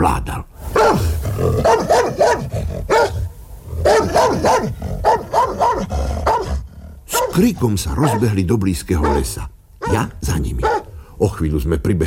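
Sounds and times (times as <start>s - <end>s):
dog barking fiercely: 0.7s - 3.2s, 3.8s - 8.4s, 9.0s - 10.9s
speech: 7.4s - 10.6s, 11.3s - 12.0s.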